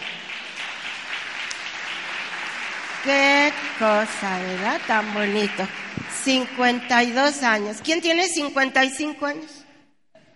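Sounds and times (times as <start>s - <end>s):
audience applause: 0.0s - 7.8s
speech: 3.0s - 9.6s.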